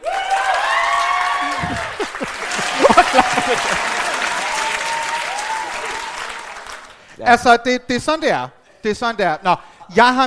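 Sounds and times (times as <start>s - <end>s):
person whooping: 0.0s - 6.5s
audience clapping as a live vote at a stage show: 0.0s - 7.1s
laughter: 1.4s - 6.1s
speech: 7.2s - 10.2s.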